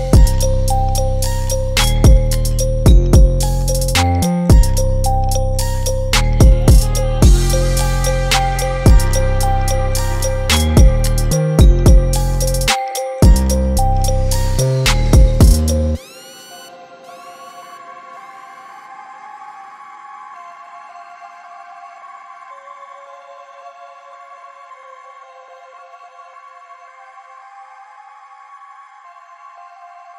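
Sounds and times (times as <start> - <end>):
instrumental music: 0.0 - 16.1.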